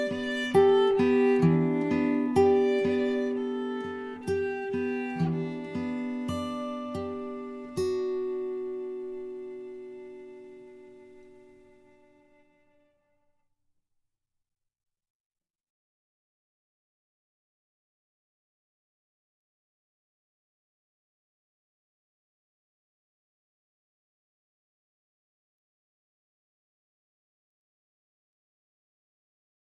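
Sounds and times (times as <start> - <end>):
acoustic duo playing: 0.0 - 12.8.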